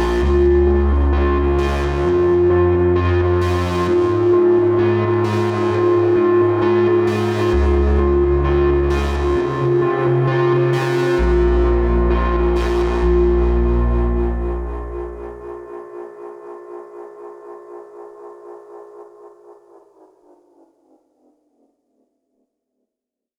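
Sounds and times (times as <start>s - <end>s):
synth processed with channel EQ and strong limiter: 0.0s - 17.3s.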